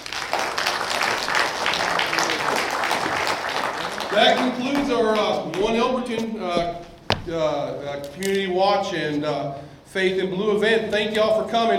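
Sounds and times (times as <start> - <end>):
audience applause: 0.0 - 5.5
speech: 4.2 - 11.7.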